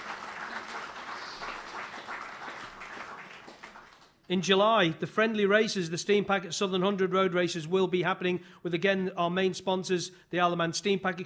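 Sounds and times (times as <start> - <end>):
steady applause from an audience: 0.0 - 4.2
speech: 4.3 - 11.2.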